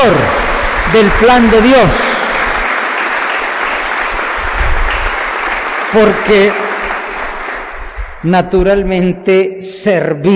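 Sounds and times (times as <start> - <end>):
audience applause: 0.0 - 8.2
speech: 0.2 - 2.1, 5.9 - 6.6, 8.2 - 10.3.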